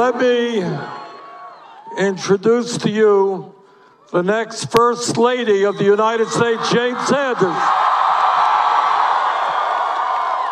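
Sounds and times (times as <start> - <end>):
speech: 0.0 - 1.0, 1.9 - 8.0
rally crowd cheering: 0.0 - 2.2, 5.4 - 10.5.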